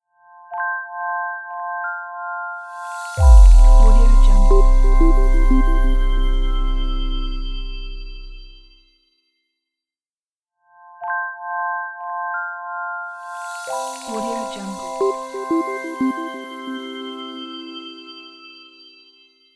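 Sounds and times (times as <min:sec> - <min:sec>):
clear liquid logo sound: 0:03.2 - 0:08.4.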